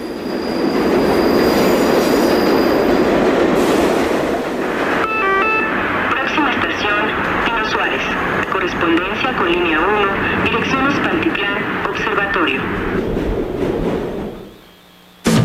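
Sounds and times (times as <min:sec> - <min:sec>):
metro train wheels squealing: 0:00.0 - 0:03.1
Mexico City metro train running underground: 0:00.0 - 0:15.3
tonal electronic signals: 0:05.0 - 0:05.8
voices: 0:05.2 - 0:13.0.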